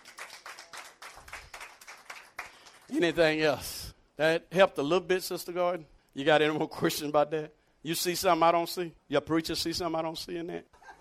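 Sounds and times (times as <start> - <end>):
church congregation clapping hands in a rhythmic beat: 0.0 - 3.4
speech: 2.9 - 10.8.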